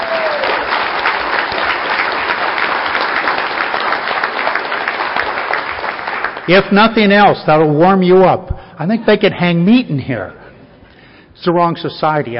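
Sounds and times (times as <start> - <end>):
thunderous applause: 0.0 - 7.1
speech: 6.4 - 10.4, 11.4 - 12.3.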